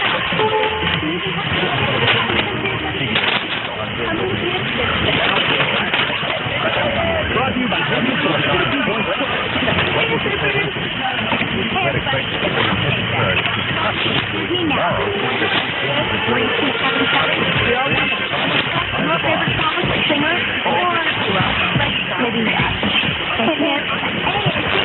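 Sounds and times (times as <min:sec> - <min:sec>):
medium wave radio reception at 1600: 0:00.0 - 0:24.8.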